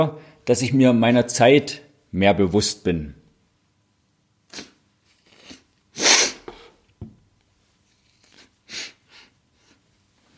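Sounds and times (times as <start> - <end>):
speech: 0.0 - 3.2
nose blowing: 4.5 - 6.8, 8.2 - 9.8.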